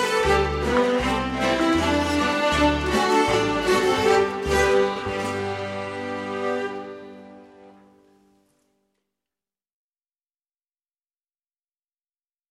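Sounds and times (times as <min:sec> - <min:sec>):
schottische in G: 0:00.0 - 0:08.1.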